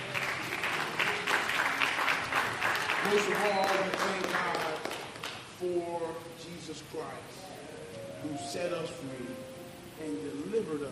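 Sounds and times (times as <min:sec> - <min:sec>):
church congregation clapping in praise for the choir: 0:00.0 - 0:05.5
speech: 0:03.0 - 0:04.8, 0:05.6 - 0:07.5, 0:08.2 - 0:10.9.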